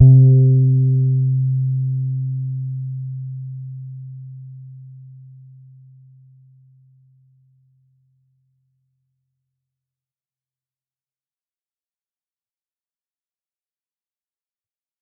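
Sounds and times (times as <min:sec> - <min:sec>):
soft E flat C4 note on a Pedulla Thunderbass bass guitar: 0:00.0 - 0:04.6.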